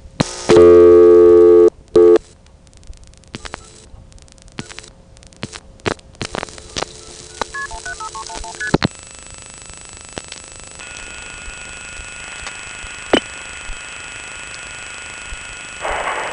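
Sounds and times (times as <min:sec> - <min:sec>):
telephone tones dialing a Jamaican number via Kingston crossbar 5 exchange: 0:00.5 - 0:02.2, 0:06.7 - 0:08.8.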